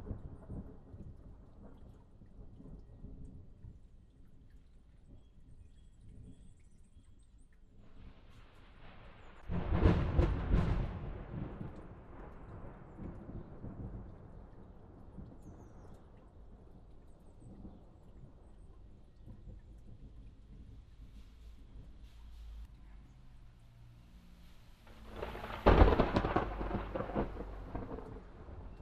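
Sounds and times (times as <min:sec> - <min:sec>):
thunderstorm: 0:00.0 - 0:03.5, 0:08.4 - 0:22.7, 0:24.8 - 0:28.8.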